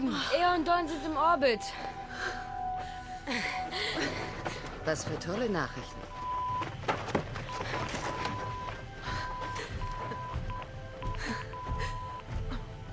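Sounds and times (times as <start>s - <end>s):
speech: 0.1s - 2.4s, 3.3s - 4.2s, 4.8s - 6.0s
Morse code beeps from a radio: 5.7s - 6.8s, 7.4s - 12.4s.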